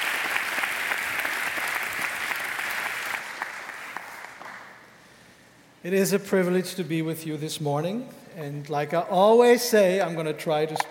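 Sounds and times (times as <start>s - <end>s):
audience applause: 0.0s - 4.8s
speech: 5.8s - 10.8s.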